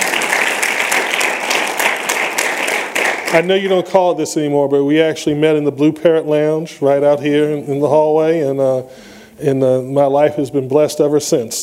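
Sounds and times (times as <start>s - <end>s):
audience applause: 0.0s - 3.7s
speech: 3.3s - 11.6s.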